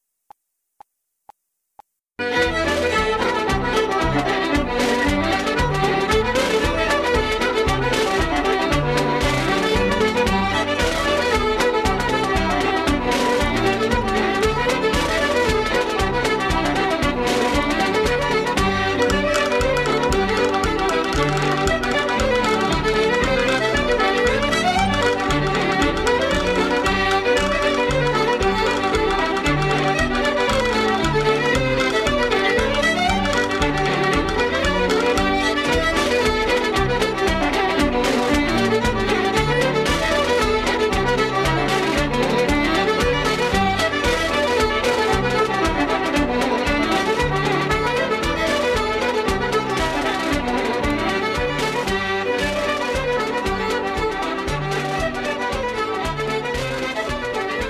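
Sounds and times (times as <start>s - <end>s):
traditional Irish reels medley in G: 2.2s - 57.6s.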